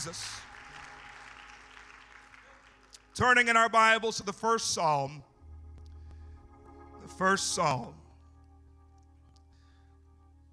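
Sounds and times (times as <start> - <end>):
speech: 0.0 - 0.5, 3.2 - 5.3, 7.1 - 8.0
audience clapping hands: 0.0 - 3.6.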